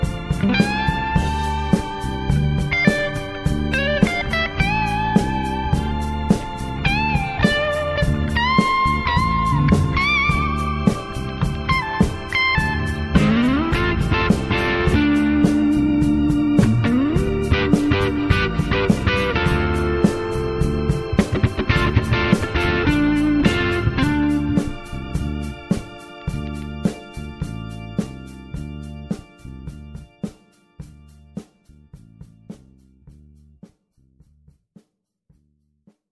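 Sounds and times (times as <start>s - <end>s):
solo guitar: 0.0s - 26.8s.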